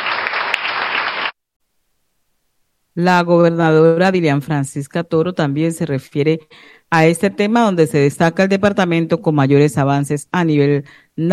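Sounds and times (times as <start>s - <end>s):
crowd applauding: 0.0s - 1.4s
speech: 3.0s - 11.3s.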